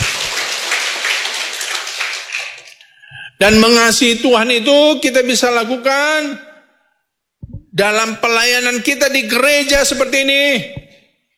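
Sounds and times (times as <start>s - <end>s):
applause from audience: 0.0s - 2.8s
speech: 3.4s - 6.5s, 7.8s - 10.8s.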